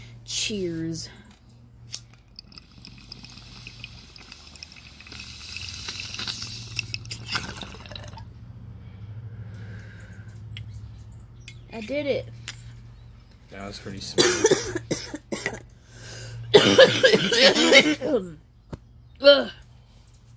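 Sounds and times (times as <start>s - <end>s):
speech: 0.3s - 1.2s, 11.8s - 12.4s, 13.5s - 15.2s, 16.6s - 18.4s, 19.2s - 19.6s
bubbling bong hit: 2.2s - 8.3s.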